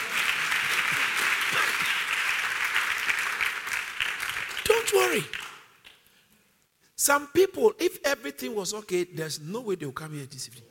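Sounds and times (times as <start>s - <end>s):
audience clapping: 0.0s - 6.1s
speech: 4.9s - 5.4s, 7.1s - 10.6s.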